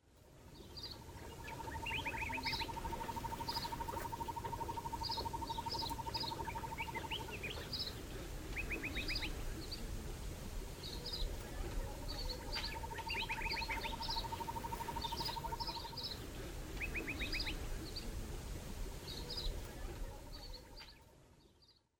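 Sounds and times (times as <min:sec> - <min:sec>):
ambience: 0:00.0 - 0:21.2.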